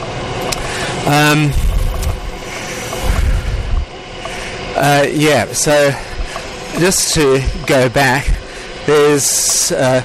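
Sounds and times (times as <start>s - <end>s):
passing freight train: 0.0s - 9.8s
speech: 1.1s - 1.6s, 4.8s - 6.1s, 6.7s - 8.3s, 8.9s - 10.0s.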